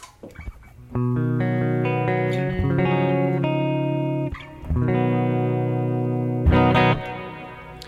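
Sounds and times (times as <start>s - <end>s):
distorted electric guitar through subtle hall reverb pedal: 0.3s - 7.8s.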